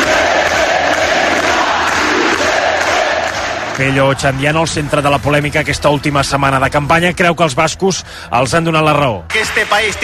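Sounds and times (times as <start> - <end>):
crowd chanting independence slogans: 0.0 - 3.8
speech: 3.8 - 10.0.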